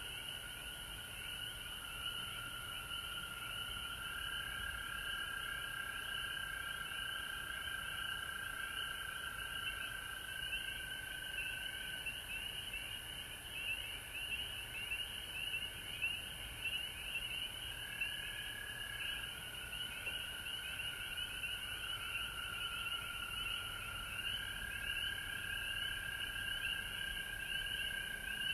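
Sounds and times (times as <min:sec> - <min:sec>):
frog chorus: 0:00.0 - 0:28.5.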